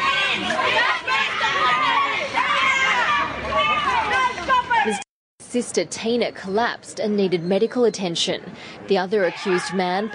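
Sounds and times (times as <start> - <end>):
angry crowd yelling outside a courthouse: 0.0 - 5.0
speech: 4.8 - 10.1.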